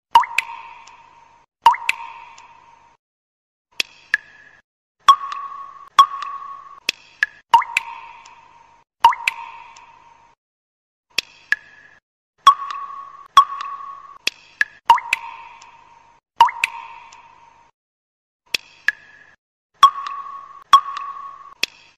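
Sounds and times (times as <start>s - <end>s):
water drop message and call ringtone: 0.1s - 0.9s, 1.7s - 2.2s, 5.0s - 8.1s, 9.0s - 9.8s, 12.4s - 15.6s, 16.4s - 17.3s, 19.8s - 21.7s.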